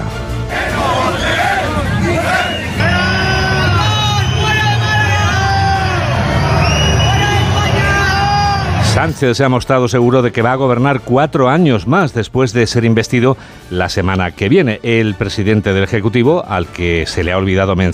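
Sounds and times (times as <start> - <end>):
crowd of protesters booing and shouting: 0.4 - 9.2
speech: 9.0 - 17.9.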